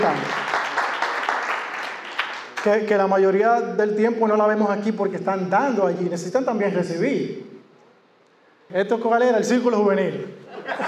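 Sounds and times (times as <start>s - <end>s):
audience applause: 0.0s - 2.6s
speech: 2.6s - 7.5s, 8.7s - 10.8s
laughter: 10.4s - 10.8s.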